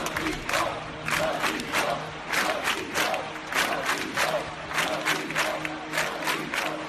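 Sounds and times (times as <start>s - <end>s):
thousands of people chanting a slogan: 0.0s - 6.8s.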